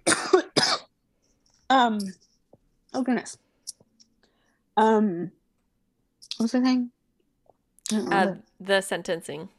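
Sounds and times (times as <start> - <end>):
person coughing while choking on water: 0.0 - 0.9
speech: 1.7 - 2.2, 2.9 - 3.4, 4.8 - 5.4, 6.4 - 7.0, 7.9 - 9.5
strained vocal sound: 7.9 - 8.4.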